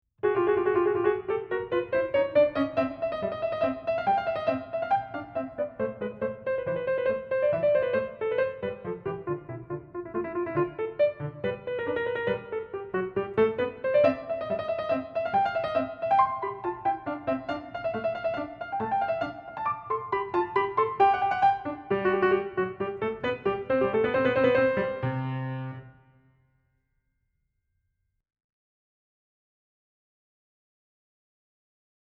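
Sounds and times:
piano: 0:00.2 - 0:26.8.

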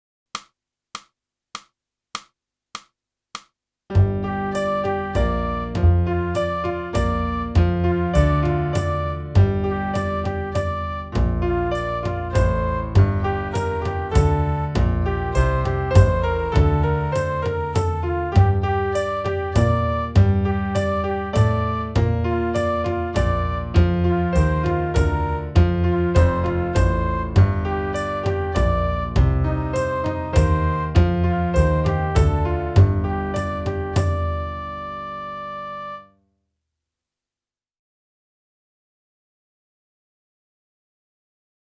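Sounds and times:
clarinet: 0:04.0 - 0:36.1.

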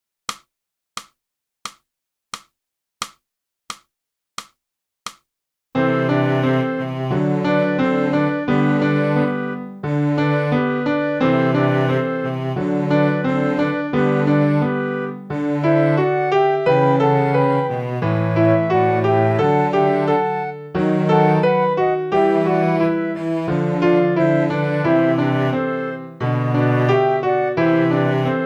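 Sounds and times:
flute: 0:05.8 - 0:28.4.

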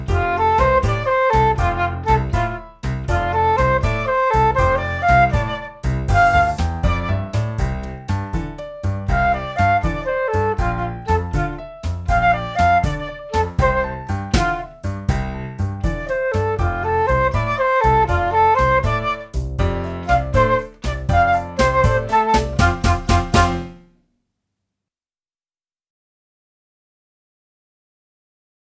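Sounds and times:
flute: 0:00.1 - 0:08.0, 0:09.1 - 0:23.7.

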